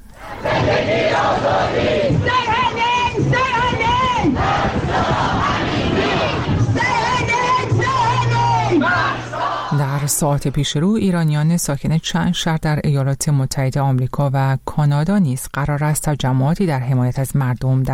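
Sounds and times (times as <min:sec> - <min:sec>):
protesters in London chanting slogans in support of Mahsa Amini: 0:00.2 - 0:10.1
speech: 0:10.2 - 0:17.9.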